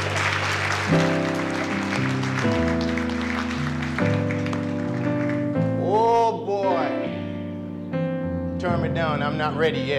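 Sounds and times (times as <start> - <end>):
crowd applause: 0.0 - 5.7
sustained organ chords: 0.0 - 9.9
speech: 9.0 - 9.9.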